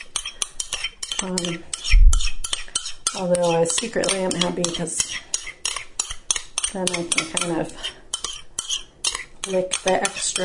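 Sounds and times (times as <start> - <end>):
spoon scraping yogurt from one bowl into another: 0.0 - 10.4
speech: 1.2 - 2.0, 3.1 - 5.3, 6.7 - 8.0, 9.5 - 10.4.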